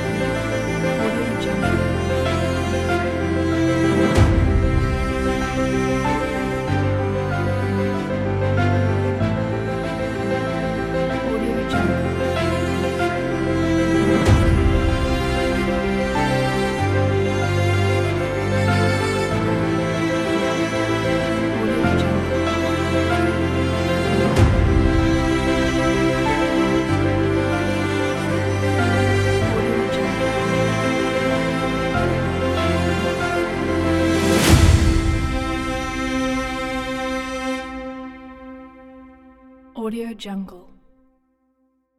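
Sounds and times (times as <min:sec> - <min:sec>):
motivational uplifting emotional piano music: 0:00.0 - 0:39.8.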